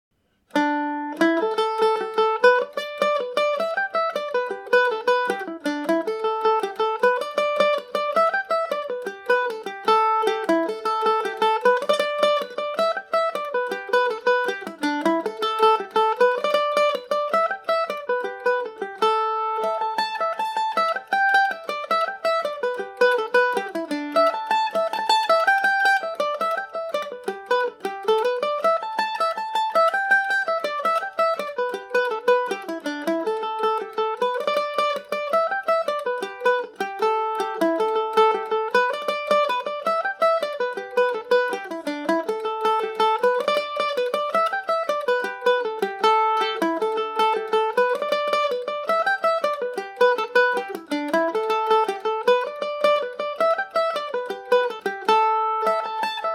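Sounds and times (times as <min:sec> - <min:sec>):
Irish mandolin in A Dorian: 0:00.2 - 0:56.3.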